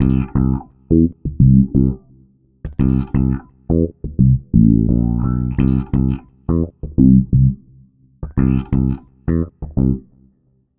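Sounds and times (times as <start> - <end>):
filtered funky electric bass: 0.0 - 10.3.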